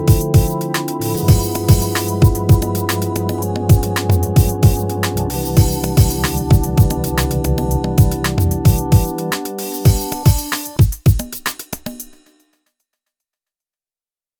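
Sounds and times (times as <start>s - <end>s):
rotary organ on a Korg Radias-R synthesizer: 0.0s - 10.8s.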